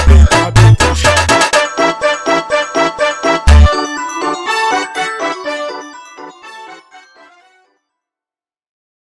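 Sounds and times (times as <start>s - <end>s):
slowed digital funk music: 0.0s - 5.8s.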